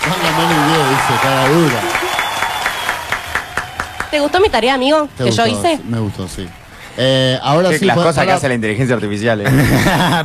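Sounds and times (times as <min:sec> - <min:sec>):
audience applause: 0:00.0 - 0:07.7
speech: 0:00.1 - 0:02.0, 0:04.1 - 0:10.2
laughter: 0:09.4 - 0:10.2.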